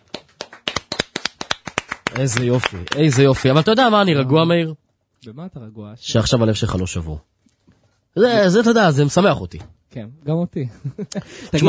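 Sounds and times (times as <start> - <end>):
applause: 0.0 - 3.7
speech: 2.2 - 7.3, 8.2 - 11.6.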